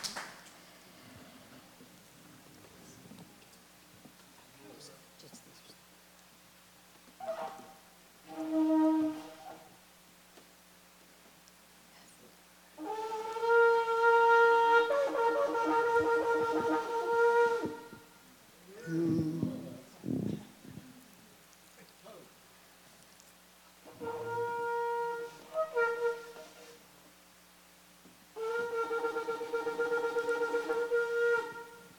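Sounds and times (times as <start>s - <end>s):
shofar blown by a learner: 7.2s - 9.8s, 12.8s - 18.2s, 23.8s - 26.8s, 28.4s - 31.9s.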